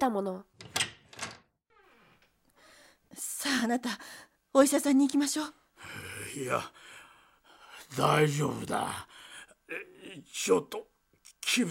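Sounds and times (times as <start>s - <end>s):
speech: 0.0s - 0.6s, 3.1s - 6.9s, 7.9s - 10.9s, 11.5s - 11.6s
door being opened: 0.6s - 1.5s.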